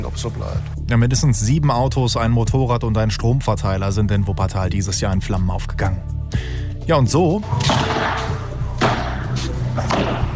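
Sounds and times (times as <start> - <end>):
speech: 0.1 - 8.3
padel balls striking rackets and walls: 7.6 - 10.3.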